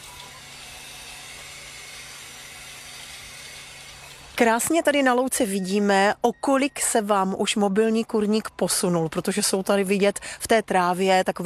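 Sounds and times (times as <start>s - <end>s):
automatic water refilling into tank: 0.0s - 4.4s
speech: 4.4s - 11.4s.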